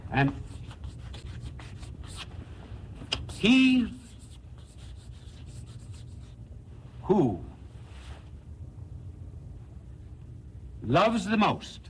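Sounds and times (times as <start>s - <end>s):
speech: 0.1s - 0.5s, 3.4s - 4.0s, 11.0s - 11.8s
pen scratching on paper: 0.5s - 2.3s, 3.3s - 6.2s.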